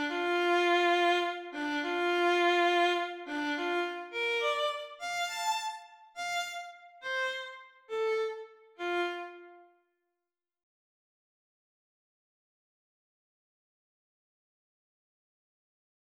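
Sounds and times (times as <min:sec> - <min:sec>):
melodic violin etudes: 0:00.0 - 0:09.7.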